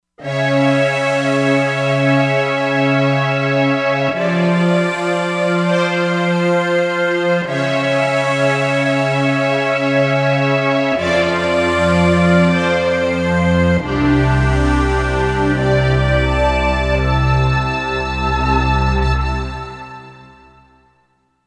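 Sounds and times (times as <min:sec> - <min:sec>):
Korg MSC-07S synth steam orchestra sound: 0:00.2 - 0:20.7.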